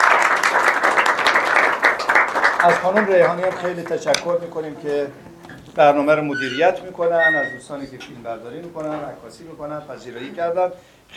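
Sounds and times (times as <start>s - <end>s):
audience applause at a cultural association gathering: 0.0s - 5.3s
speech: 2.6s - 11.1s.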